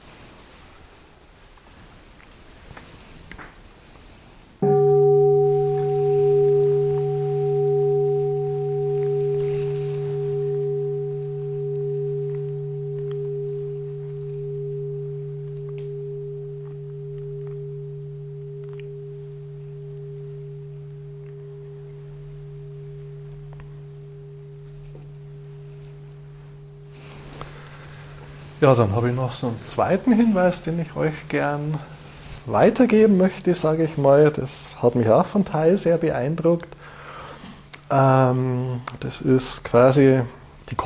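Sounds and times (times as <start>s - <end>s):
bell ringing: 4.6s - 31.9s
speech: 28.6s - 36.8s, 37.9s - 40.8s.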